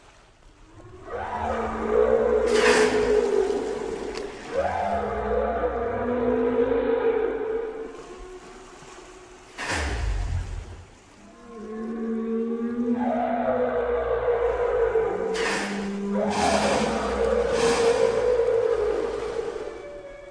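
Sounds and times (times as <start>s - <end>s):
whale song with tonal moans: 0.6s - 20.3s.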